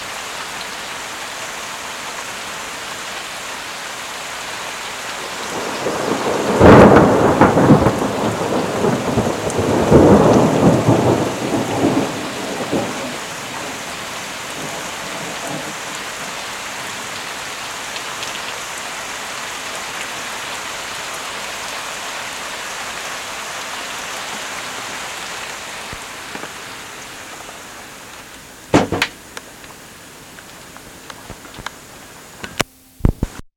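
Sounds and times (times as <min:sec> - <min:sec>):
thunder: 0:05.4 - 0:13.8.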